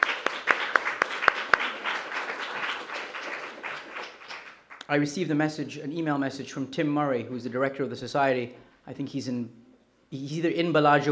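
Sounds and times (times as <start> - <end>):
audience applauding at a university comparative literature department event: 0.0 - 4.9
speech: 4.9 - 11.1.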